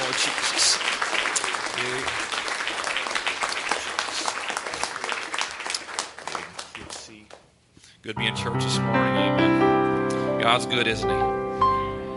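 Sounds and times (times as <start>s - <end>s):
audience clapping: 0.0s - 7.6s
speech: 8.0s - 9.7s, 10.5s - 11.4s.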